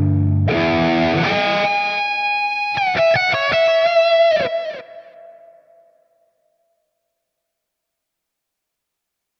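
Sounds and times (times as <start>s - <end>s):
overdrive distortion: 0.0s - 5.8s.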